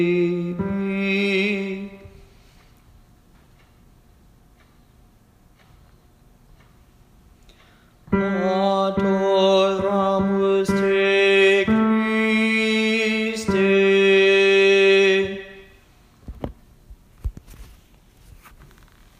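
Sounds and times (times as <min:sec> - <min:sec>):
tenor voice singing in a choir for holy week practice: 0:00.0 - 0:02.2, 0:08.1 - 0:15.8.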